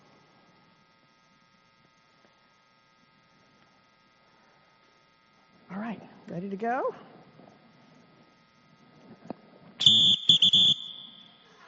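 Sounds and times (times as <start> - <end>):
speech: 6.3 - 7.1
shrill whistle blown: 9.8 - 11.5.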